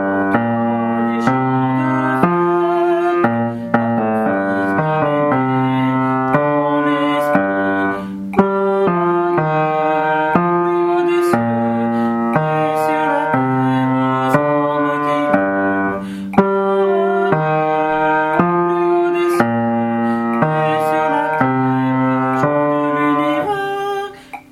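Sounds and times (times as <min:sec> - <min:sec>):
hymn played on bass: 0:00.0 - 0:24.0.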